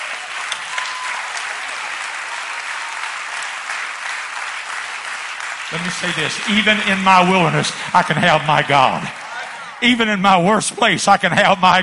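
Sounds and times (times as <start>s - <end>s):
audience clapping hands: 0.0s - 11.6s
speech: 5.7s - 9.2s, 9.8s - 11.8s.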